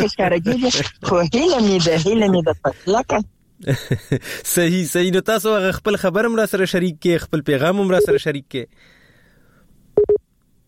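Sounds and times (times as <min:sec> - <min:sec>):
speech: 0:00.0 - 0:09.0
busy tone beeps after a telephone line is cut off: 0:08.0 - 0:08.2.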